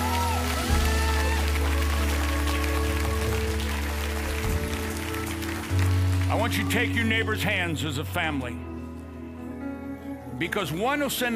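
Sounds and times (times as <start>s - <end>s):
audience clapping: 0.0s - 7.4s
speech: 6.4s - 8.7s, 10.4s - 11.3s.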